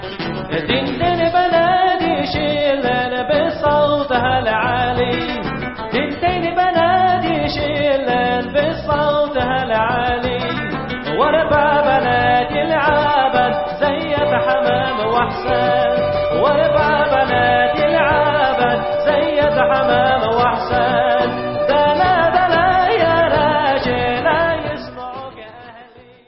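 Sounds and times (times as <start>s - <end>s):
vocals: 0.1s - 26.2s.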